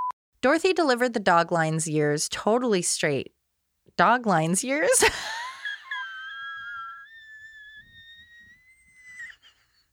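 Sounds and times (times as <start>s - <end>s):
speech: 0.4s - 3.4s, 4.0s - 5.4s
laughter: 4.6s - 8.2s
long thin whistling wheeze: 5.6s - 9.9s.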